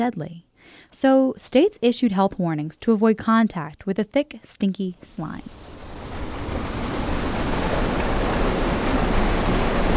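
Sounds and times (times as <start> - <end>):
speech: 0.0 - 5.7
water rushing at a drinking water treatment plant in Huntington, West Virginia: 5.5 - 9.9.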